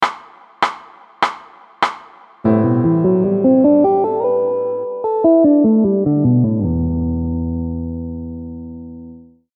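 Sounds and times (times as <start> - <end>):
musical interval: 2.5 - 9.0.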